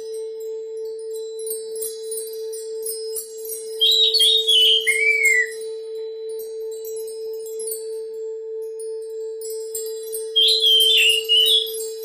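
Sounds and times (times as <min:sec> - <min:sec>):
Oriental magpie-robin song: 0:03.8 - 0:05.6, 0:10.3 - 0:12.0.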